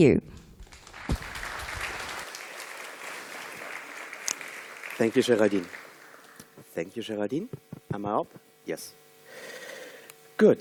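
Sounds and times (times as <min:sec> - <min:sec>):
speech: 0:00.0 - 0:00.4, 0:05.0 - 0:05.8, 0:06.8 - 0:09.6, 0:10.4 - 0:10.5
crowd applauding: 0:00.6 - 0:06.6.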